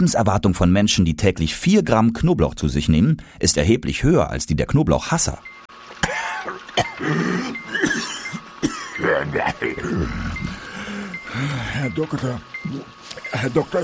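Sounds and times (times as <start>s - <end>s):
speech: 0.0s - 6.1s, 7.0s - 7.6s, 9.2s - 10.5s, 11.4s - 13.8s
person coughing: 6.0s - 9.0s, 9.8s - 10.2s.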